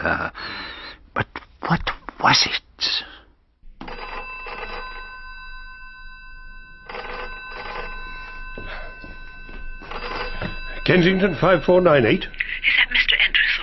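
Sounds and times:
speech: 0.0s - 3.1s, 10.9s - 12.4s
telephone ringing: 3.7s - 13.6s.

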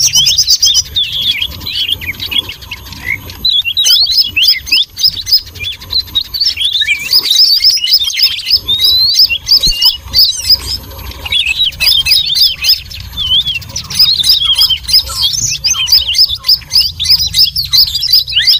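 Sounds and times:
many birds chirping: 0.0s - 18.5s.

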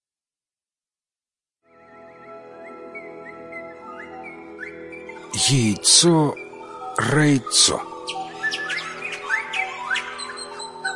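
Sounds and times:
lark chirping: 2.7s - 10.9s
speech: 5.4s - 6.4s, 7.0s - 8.2s.

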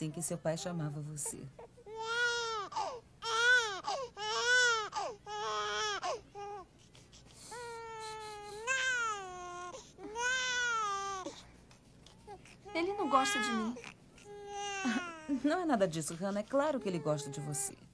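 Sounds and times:
speech: 0.0s - 1.7s, 15.6s - 17.9s
baby crying: 1.6s - 6.7s, 7.4s - 11.4s, 12.2s - 15.4s.

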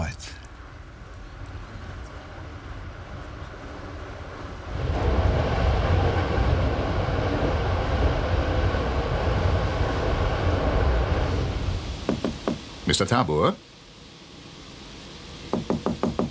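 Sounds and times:
train running, inside a sleeping car: 0.0s - 13.7s
speech: 13.0s - 13.6s.

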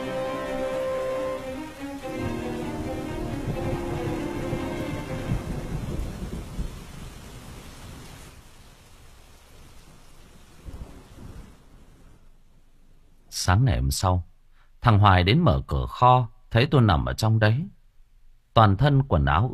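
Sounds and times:
heavy rain pouring outside: 0.0s - 12.7s
deep rolling thunder rumble: 2.0s - 8.3s, 10.4s - 12.4s
speech: 13.5s - 17.8s, 18.6s - 19.5s.

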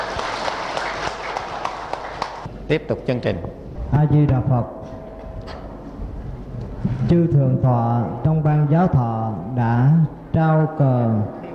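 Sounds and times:
audience applauding at a Buddhist ceremony: 0.0s - 2.5s
speech: 2.7s - 4.8s, 7.1s - 11.4s.

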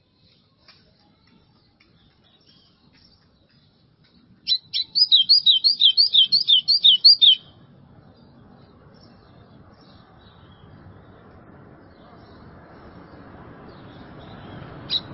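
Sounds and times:
White-throated seedeater singing rapid downslurred whistled notes: 4.5s - 7.5s.

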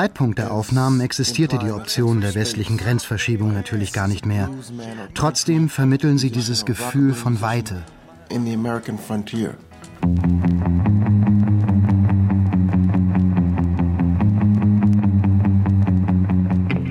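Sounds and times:
speech: 0.0s - 10.9s
recorded music drenched in reverb with pulsing beat: 10.0s - 16.8s.

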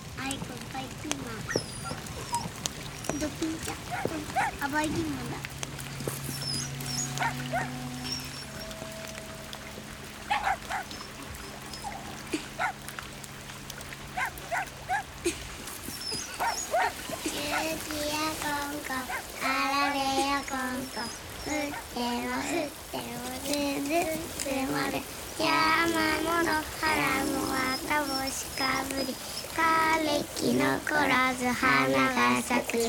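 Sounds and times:
low steady hum: 0.0s - 32.8s
small dog whimpering: 1.4s - 4.6s, 6.2s - 9.2s, 15.8s - 17.9s, 19.0s - 22.6s, 26.9s - 29.9s
small dog yipping: 1.4s - 4.6s, 6.2s - 8.8s, 10.3s - 12.8s, 14.2s - 15.1s, 15.9s - 17.8s.

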